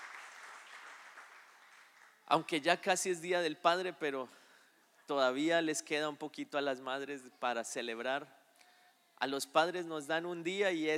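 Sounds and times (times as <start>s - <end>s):
audience applause: 0.0s - 2.2s
speech: 2.3s - 4.4s, 5.1s - 8.4s, 9.2s - 10.9s.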